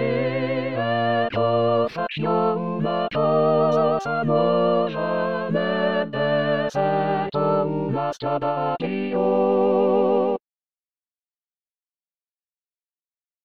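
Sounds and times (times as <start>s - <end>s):
choir singing: 0.0s - 10.4s.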